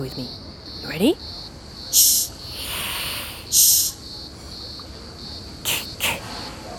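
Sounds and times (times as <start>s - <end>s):
speech: 0.0s - 2.2s
faint insect-like whine: 0.0s - 6.7s
rhinoceros beetle hissing: 2.0s - 4.0s, 5.7s - 6.7s.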